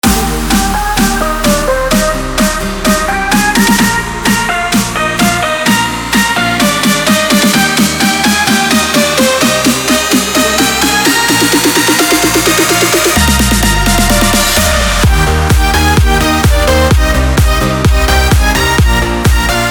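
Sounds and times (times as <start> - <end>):
electronic dance music: 0.0 - 19.6.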